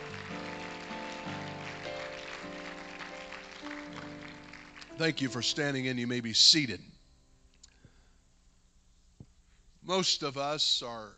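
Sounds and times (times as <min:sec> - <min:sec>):
audience clapping hands: 0:00.0 - 0:05.6
speech: 0:05.0 - 0:06.9, 0:10.0 - 0:11.1.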